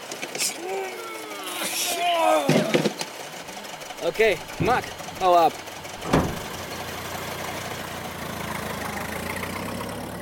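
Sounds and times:
speech: 0.4s - 2.6s, 4.0s - 6.3s
car engine driving away: 3.6s - 10.1s.

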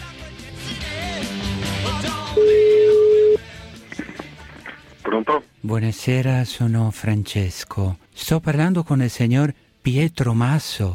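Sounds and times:
busy musical background: 0.0s - 10.9s
telephone call ringing tone: 2.3s - 3.4s
speech: 5.6s - 10.9s.

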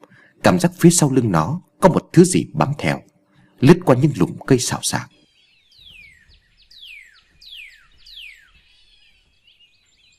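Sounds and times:
speech: 0.4s - 5.2s
oriental magpie-robins singing in the morning: 4.2s - 10.1s.

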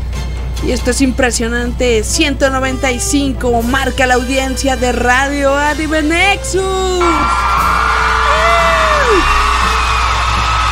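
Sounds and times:
speech: 0.6s - 7.8s
studio audience on an anime radio show cheering and yelling: 7.0s - 10.7s
whooping call: 7.0s - 10.7s.

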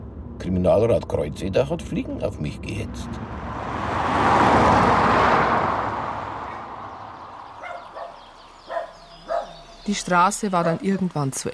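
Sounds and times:
speech: 0.4s - 4.0s, 9.9s - 11.5s
broad rushing swell: 2.8s - 7.6s
forester's dog barking at the edge of a forest: 7.6s - 9.7s.

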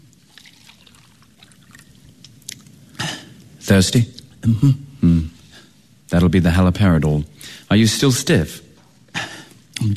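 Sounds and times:
water pouring into a cup: 0.0s - 2.2s
speech: 3.7s - 5.3s, 6.1s - 8.6s.

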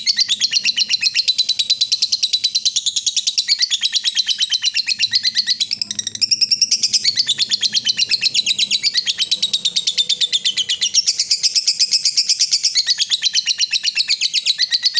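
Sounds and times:
yellow-vented bulbul chatter: 0.0s - 14.9s.

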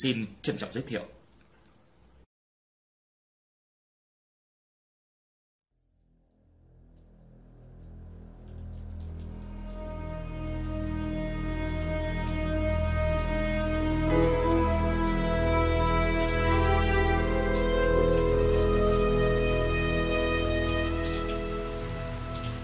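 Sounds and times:
speech: 0.0s - 1.2s
rain pattering on the outskirts of Komagomi: 6.8s - 22.6s.

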